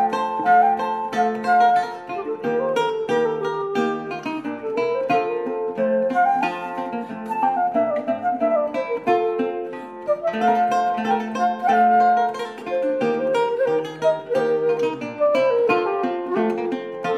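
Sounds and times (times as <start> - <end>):
flute in a duet with lute: 0.0 - 17.1
lute in a duet with flute: 0.0 - 17.1.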